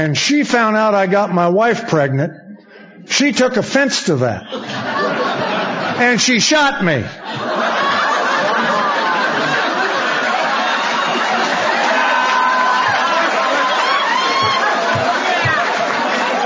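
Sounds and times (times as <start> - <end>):
speech: 0.0 - 2.4, 3.1 - 5.2, 6.0 - 7.5
laughter: 4.4 - 6.0, 7.2 - 16.4
crowd chatter: 7.2 - 16.4
audience clapping: 8.4 - 16.4.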